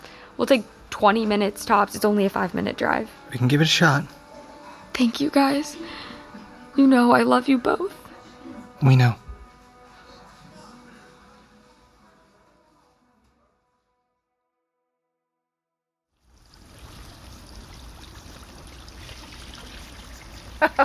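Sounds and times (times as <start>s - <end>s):
speech: 0.4s - 4.2s, 5.0s - 6.1s, 6.8s - 8.0s, 8.8s - 9.2s
running water from washing broccoli florets: 16.2s - 20.8s.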